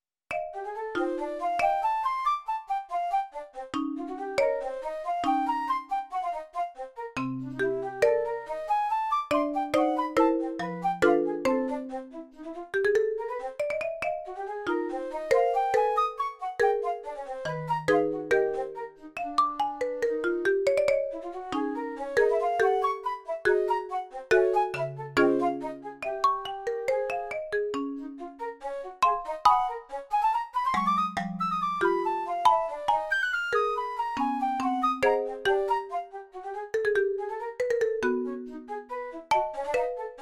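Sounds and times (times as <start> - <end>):
prelude: 0.3 - 6.5, 7.2 - 40.1.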